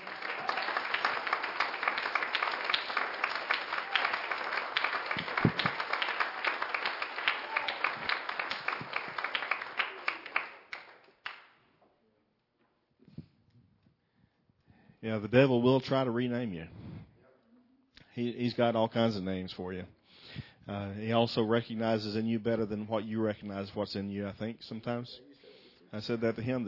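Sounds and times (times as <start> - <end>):
audience clapping hands: 0.0 - 11.6
speech: 15.1 - 16.8, 18.2 - 20.0, 20.7 - 25.3, 25.9 - 26.6.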